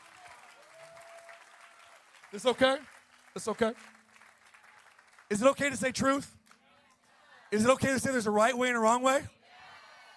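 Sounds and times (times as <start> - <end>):
audience clapping: 0.0 - 6.6
speech: 2.3 - 4.0, 5.3 - 6.4, 7.5 - 9.4.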